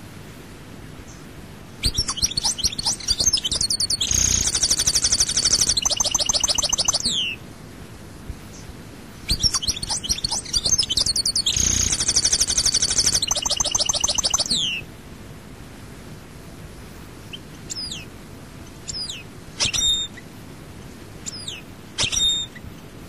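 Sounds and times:
European goldfinch twittering song: 1.8s - 7.4s, 9.3s - 14.8s, 17.3s - 18.1s, 18.8s - 20.2s, 21.2s - 22.7s.

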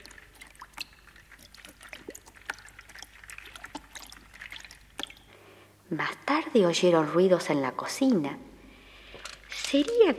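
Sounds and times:
bubble bath water splashing: 0.0s - 5.5s
speech: 5.9s - 8.5s, 9.7s - 10.1s.

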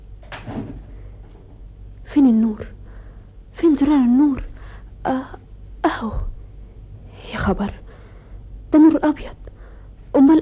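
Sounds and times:
door being closed: 0.2s - 1.6s
speech: 2.1s - 2.7s, 3.6s - 5.4s, 6.0s - 6.3s, 7.3s - 7.8s, 8.7s - 9.4s, 10.2s - 10.4s.

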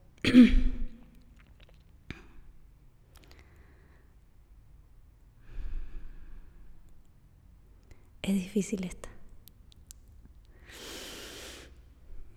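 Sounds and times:
imitated throat clearing: 0.2s - 1.0s
speech: 0.3s - 0.6s, 8.3s - 9.2s.

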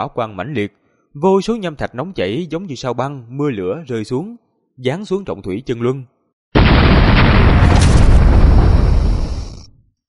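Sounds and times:
speech: 0.0s - 6.1s
thunderous explosions: 6.6s - 9.8s.

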